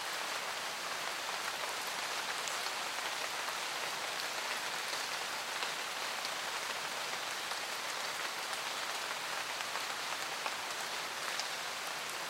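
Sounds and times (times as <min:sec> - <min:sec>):
rain in a forest: 0:00.0 - 0:12.2.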